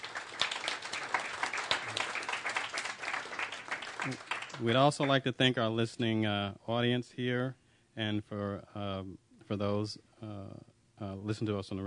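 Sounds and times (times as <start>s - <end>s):
audience applause: 0.0s - 5.2s
speech: 4.0s - 11.8s.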